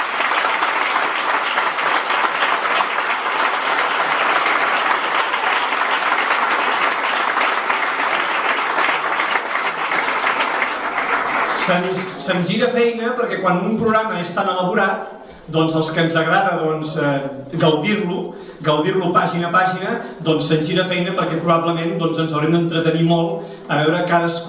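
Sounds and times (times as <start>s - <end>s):
sustained applause from a large audience: 0.0s - 12.4s
speech: 11.7s - 24.4s.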